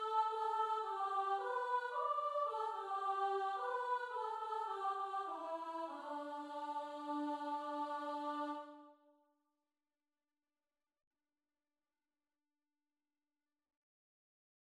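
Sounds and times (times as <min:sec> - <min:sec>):
soprano: 0:00.0 - 0:08.9.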